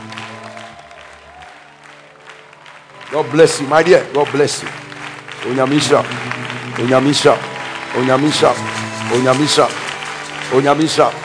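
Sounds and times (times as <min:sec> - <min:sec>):
audience clapping: 0:00.0 - 0:11.2
sustained organ or keyboard chords: 0:02.2 - 0:11.2
speech: 0:03.1 - 0:04.8, 0:05.4 - 0:09.8, 0:10.5 - 0:11.2.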